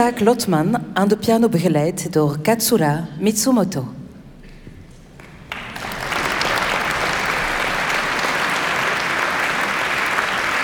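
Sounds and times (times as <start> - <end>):
speech: 0.0 - 4.0
audience applause as cellist enters stage: 5.2 - 10.6.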